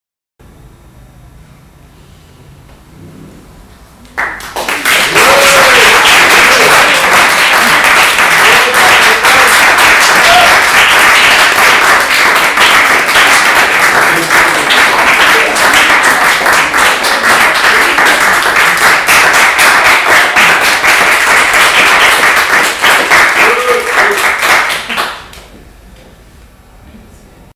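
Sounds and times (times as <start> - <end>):
applause: 4.2 - 25.5.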